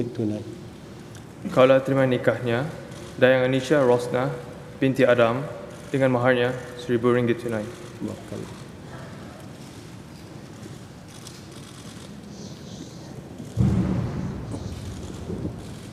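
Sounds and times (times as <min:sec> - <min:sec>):
speech: 0:00.0 - 0:00.6, 0:01.4 - 0:08.6
steady noise: 0:00.0 - 0:15.9
cannon firing a salute at a royal wedding ceremony: 0:13.6 - 0:15.6.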